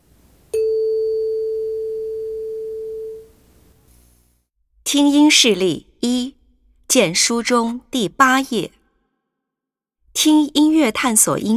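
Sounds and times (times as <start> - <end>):
bell tone: 0.6 - 3.3
speech: 4.9 - 6.3, 6.9 - 8.8, 10.2 - 11.5.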